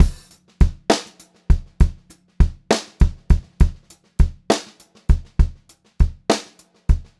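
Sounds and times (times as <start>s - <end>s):
pop-rock drum loop: 0.0s - 7.1s.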